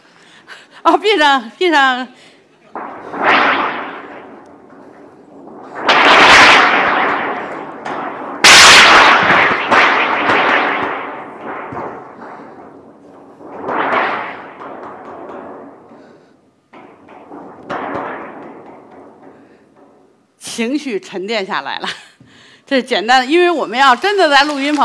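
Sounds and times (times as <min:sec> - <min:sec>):
speech: 0:00.8 - 0:02.2, 0:20.6 - 0:22.0, 0:22.7 - 0:24.8
foley thunder shaken from a thunder board: 0:02.7 - 0:20.2.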